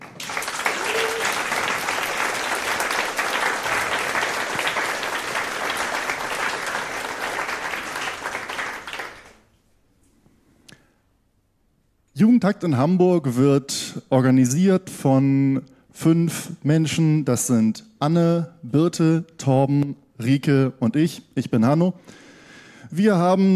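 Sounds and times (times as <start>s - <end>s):
audience applause: 0.0s - 9.5s
speech: 12.2s - 22.2s, 22.9s - 23.5s.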